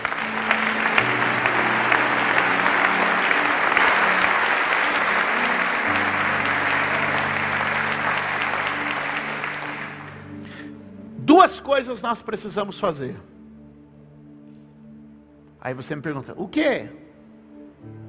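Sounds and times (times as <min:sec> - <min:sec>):
audience applause: 0:00.0 - 0:10.6
speech: 0:11.7 - 0:13.4, 0:15.6 - 0:17.1.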